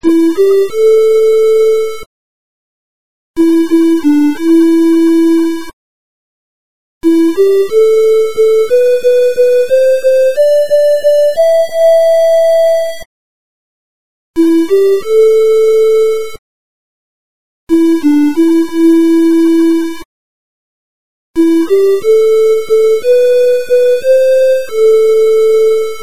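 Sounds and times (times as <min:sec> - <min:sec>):
ringtone: 0:00.0 - 0:02.1, 0:03.4 - 0:05.8, 0:07.0 - 0:13.1, 0:14.4 - 0:16.4, 0:17.7 - 0:20.1, 0:21.4 - 0:26.0.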